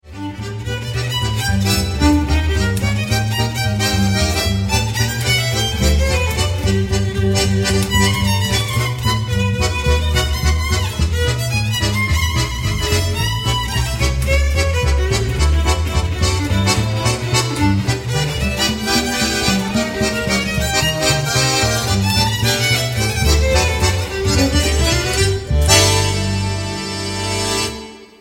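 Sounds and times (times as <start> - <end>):
swing music: 0.0 - 28.1.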